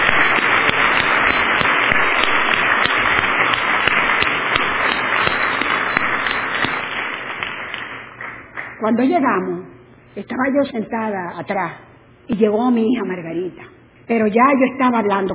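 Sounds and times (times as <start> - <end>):
audience applause: 0.0 - 8.8
speech: 8.8 - 15.3.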